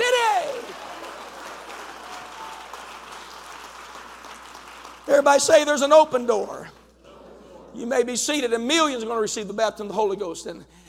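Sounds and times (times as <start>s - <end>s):
people clapping: 0.0s - 7.0s
speech: 5.2s - 6.8s, 7.8s - 10.8s.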